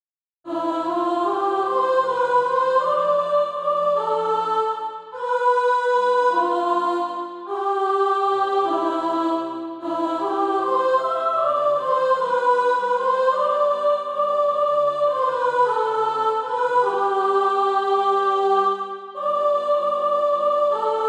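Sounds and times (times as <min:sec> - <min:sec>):
soprano singing SATB practice music: 0:00.5 - 0:21.0.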